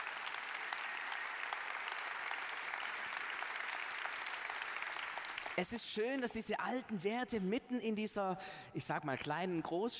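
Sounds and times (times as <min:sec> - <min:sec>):
audience applause: 0:00.0 - 0:05.6
speech: 0:05.6 - 0:09.9.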